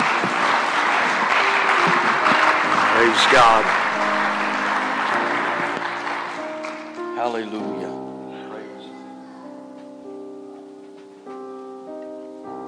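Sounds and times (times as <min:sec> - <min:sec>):
audience clapping: 0:00.0 - 0:07.4
speech: 0:03.0 - 0:03.8, 0:07.3 - 0:08.0.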